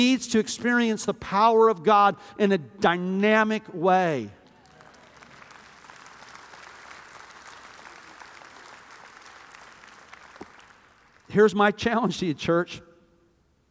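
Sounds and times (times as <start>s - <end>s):
speech: 0.0s - 4.4s, 11.3s - 12.9s
audience applauding: 4.4s - 11.3s.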